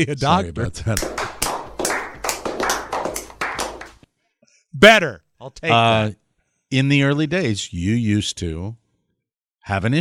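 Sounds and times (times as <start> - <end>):
speech: 0.0 - 1.3, 4.8 - 8.8, 9.6 - 10.0
crowd clapping: 1.0 - 4.0.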